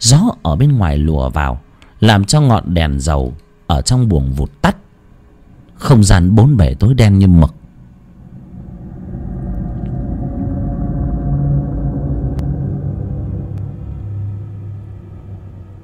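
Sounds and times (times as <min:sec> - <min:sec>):
speech: 0:00.0 - 0:04.8, 0:05.8 - 0:07.6
rumbling thunder: 0:07.6 - 0:15.8.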